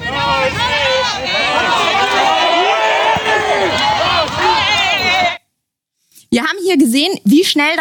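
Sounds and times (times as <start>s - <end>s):
aggressive shouting from a crowd: 0.0s - 5.4s
speech: 6.7s - 7.8s.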